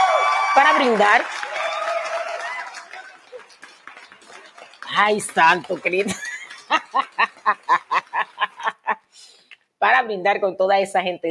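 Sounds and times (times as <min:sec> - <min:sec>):
applause: 0:00.0 - 0:08.8
speech: 0:00.6 - 0:01.5, 0:05.0 - 0:07.9, 0:09.8 - 0:11.3
laughter: 0:02.6 - 0:09.0.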